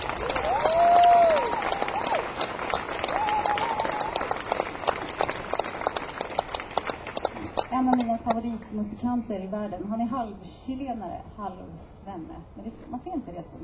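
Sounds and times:
audience applause and cheering: 0.0 - 8.0
speech: 8.4 - 13.6.

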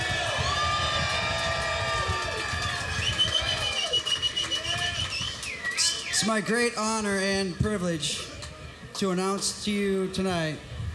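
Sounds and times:
audience applause: 0.0 - 6.6
speech: 6.3 - 8.3, 9.0 - 10.7.

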